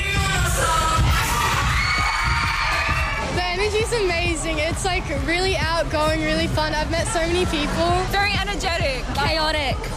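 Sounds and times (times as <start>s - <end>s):
concert crowd going wild in mosh pit: 0.6s - 3.4s
speech: 4.0s - 9.9s.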